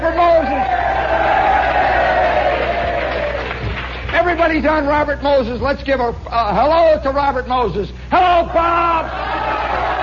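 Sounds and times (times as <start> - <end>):
crowd cheering: 0.0 - 4.1, 8.5 - 10.0
speech: 4.5 - 9.8.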